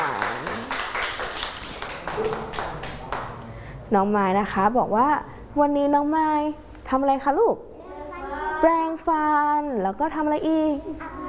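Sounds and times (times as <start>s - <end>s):
audience clapping for a child: 0.0s - 3.4s
speech: 3.9s - 7.7s, 8.6s - 11.1s.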